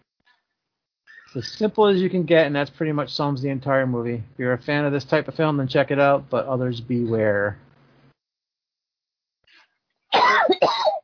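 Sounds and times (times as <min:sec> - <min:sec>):
speech: 0:01.3 - 0:07.7
person coughing and choking from allergies: 0:10.1 - 0:11.0.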